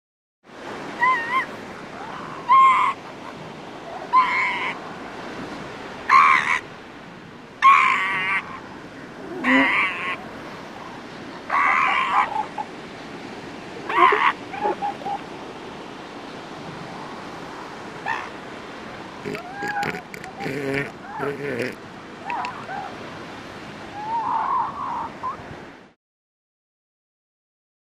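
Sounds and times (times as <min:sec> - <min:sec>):
ocean waves: 0:00.5 - 0:26.0
elephant seal calling and crying: 0:01.0 - 0:03.1, 0:04.0 - 0:04.8, 0:07.6 - 0:08.6, 0:09.2 - 0:10.2, 0:11.5 - 0:12.7, 0:13.8 - 0:15.3, 0:18.0 - 0:18.3, 0:19.2 - 0:23.0, 0:23.9 - 0:25.4
seagulls calling: 0:01.0 - 0:04.8, 0:06.1 - 0:06.7, 0:07.6 - 0:12.9, 0:13.8 - 0:15.4, 0:18.0 - 0:18.4, 0:19.2 - 0:23.0, 0:23.9 - 0:25.4
elephant seal cub growling and snorting: 0:19.2 - 0:21.8.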